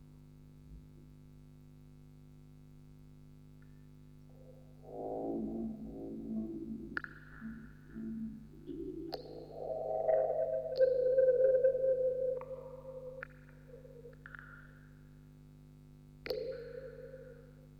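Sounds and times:
vocoder recording: 0:04.4 - 0:14.1.

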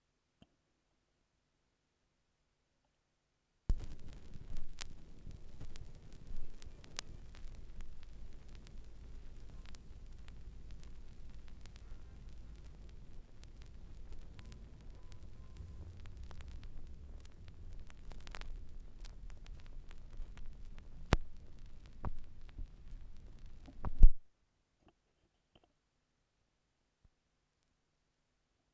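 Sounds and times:
vinyl record noise: 0:03.7 - 0:24.3.

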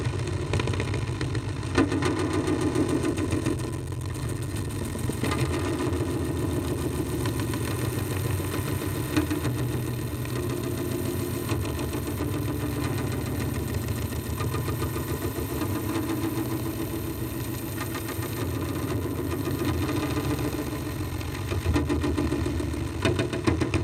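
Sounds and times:
drums in the rain with tape echo from a tape echo speaker: 0:00.0 - 0:23.8.

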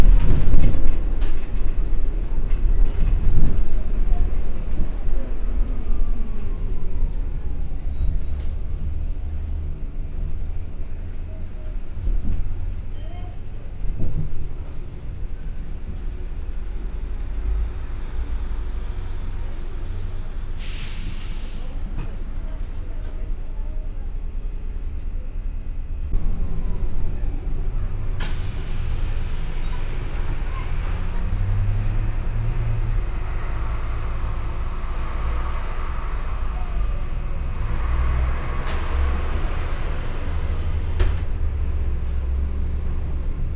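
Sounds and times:
bus passing in Brazil: 0:00.0 - 0:43.5.

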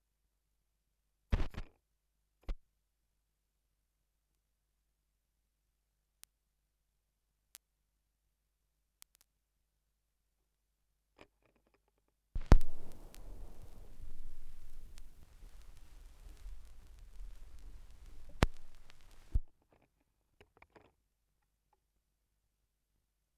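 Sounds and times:
vinyl record noise: 0:12.4 - 0:19.5.

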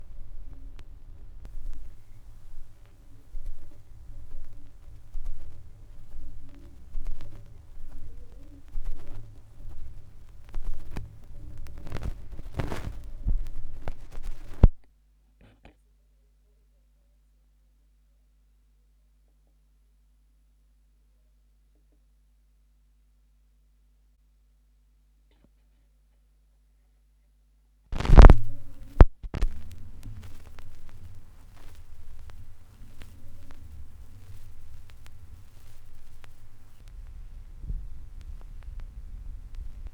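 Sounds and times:
vinyl record noise: 0:00.0 - 0:14.9, 0:28.0 - 0:39.9.

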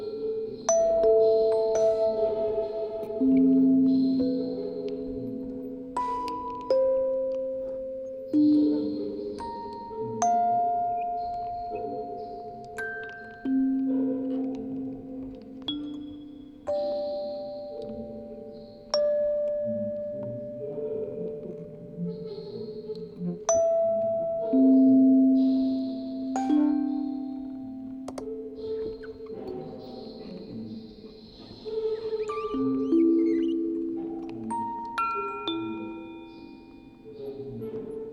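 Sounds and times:
quartet of music boxes recorded on tape with vocoder: 0:00.0 - 0:38.1.

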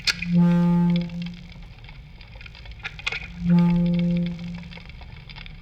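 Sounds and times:
live vocoder mix: 0:00.2 - 0:01.6, 0:03.3 - 0:04.9.

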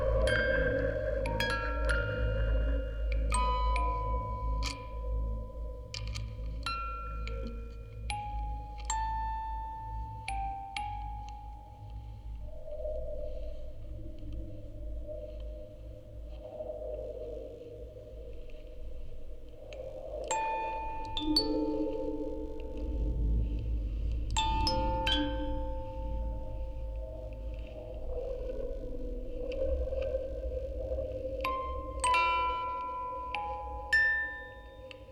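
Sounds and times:
quartet of music boxes playing: 0:00.0 - 0:12.4, 0:20.3 - 0:23.4, 0:24.2 - 0:27.7, 0:31.4 - 0:35.1
field recording ambience: 0:00.0 - 0:35.1.

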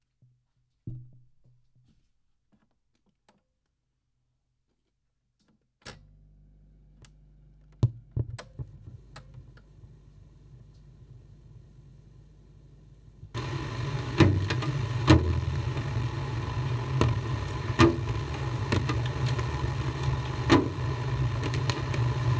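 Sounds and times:
drums in the rain with tape echo: 0:07.8 - 0:12.0, 0:12.8 - 0:22.3.

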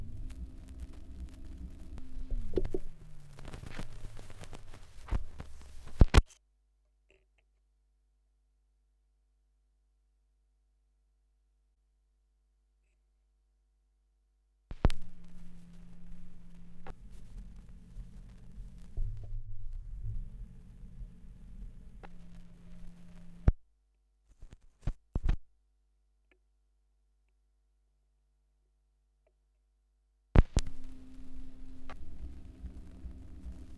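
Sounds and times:
78 rpm gramophone record surface noise: 0:00.0 - 0:06.3, 0:14.7 - 0:23.6, 0:30.4 - 0:33.7.

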